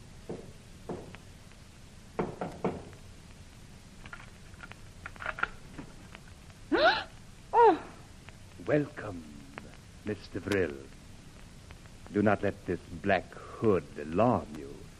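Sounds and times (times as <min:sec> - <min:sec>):
knocking on door: 0:00.3 - 0:01.1, 0:02.2 - 0:02.9
speech: 0:08.7 - 0:09.3, 0:10.1 - 0:11.0, 0:12.1 - 0:14.8.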